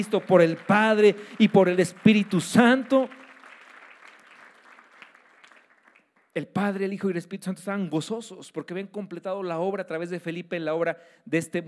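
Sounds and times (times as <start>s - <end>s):
speech: 0.0s - 3.2s, 6.4s - 11.6s
audience applauding loudly: 0.0s - 6.4s.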